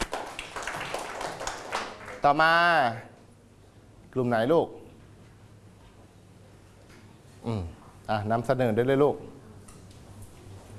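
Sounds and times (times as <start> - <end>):
classroom clapping: 0.0 - 2.4
speech: 2.2 - 3.1, 4.2 - 4.8, 7.4 - 9.4.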